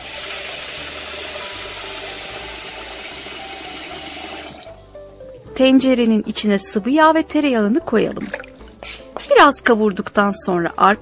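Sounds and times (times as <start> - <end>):
washing rice under running water: 0.0 - 4.7
speech: 5.6 - 8.4, 9.4 - 11.0.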